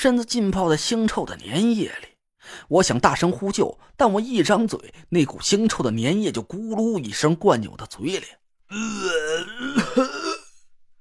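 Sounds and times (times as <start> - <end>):
speech: 0.0 - 10.1
person imitating dry heaving and retching on the ground: 8.7 - 10.7.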